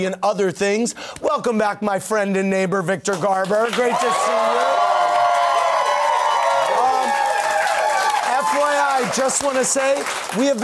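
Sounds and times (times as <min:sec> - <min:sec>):
speech: 0:00.0 - 0:04.9, 0:09.1 - 0:10.6
small talk-show studio audience standing ovation applause: 0:03.5 - 0:10.6
studio audience cheering and whooping: 0:03.8 - 0:09.3.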